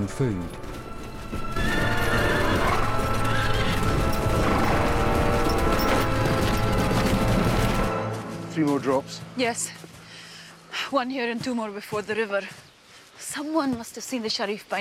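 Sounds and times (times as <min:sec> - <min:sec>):
speech: 0:00.0 - 0:01.8, 0:08.6 - 0:09.9, 0:10.9 - 0:12.6, 0:13.2 - 0:14.7
hoofbeats of horses of mounted soldiers: 0:00.0 - 0:14.7
horses whinnying: 0:00.8 - 0:07.8.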